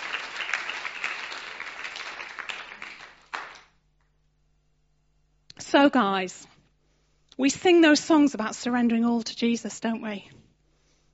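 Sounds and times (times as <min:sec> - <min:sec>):
round of applause: 0:00.0 - 0:03.8
speech: 0:05.7 - 0:06.5, 0:07.4 - 0:10.4.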